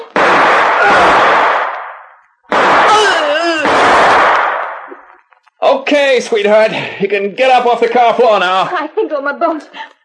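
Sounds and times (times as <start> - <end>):
gunshots: 0.0 - 5.1
speech: 5.7 - 10.0.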